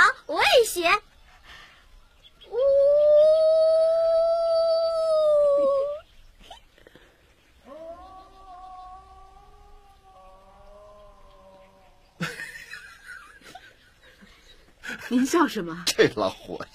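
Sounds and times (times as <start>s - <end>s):
person imitating a wolf howl: 2.5s - 6.0s, 7.6s - 12.0s
laughter: 12.2s - 15.2s
speech: 15.3s - 16.7s.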